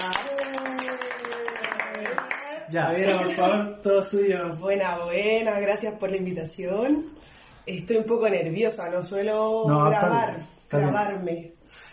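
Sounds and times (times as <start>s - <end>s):
audience applause: 0.0s - 2.5s
speech: 2.7s - 11.8s.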